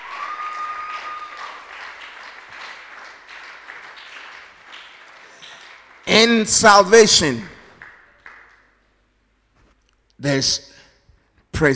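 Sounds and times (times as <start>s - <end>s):
audience clapping: 0.0s - 8.8s
speech: 6.2s - 7.5s, 10.2s - 10.7s, 11.6s - 11.7s.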